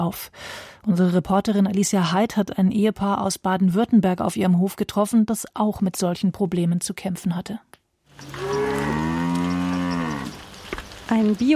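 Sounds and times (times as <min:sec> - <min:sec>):
speech: 0:00.0 - 0:08.6, 0:11.1 - 0:11.5
cows mooing while driven to pasture: 0:08.2 - 0:10.5.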